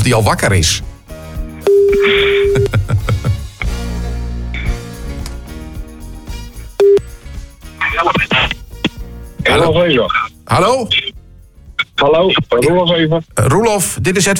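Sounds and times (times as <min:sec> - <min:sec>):
speech: 0:00.0 - 0:00.9, 0:01.7 - 0:03.0, 0:08.0 - 0:08.6, 0:09.4 - 0:11.0, 0:12.0 - 0:14.3
music: 0:00.0 - 0:14.3
telephone ringback tone of a call to a camper in Norway: 0:01.7 - 0:02.7
laughter: 0:01.9 - 0:03.6.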